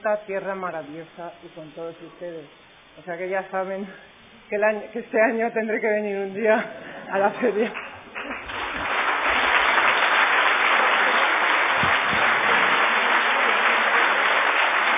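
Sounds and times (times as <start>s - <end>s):
speech: 0.0s - 7.9s
audience ovation at a gala: 8.0s - 14.9s.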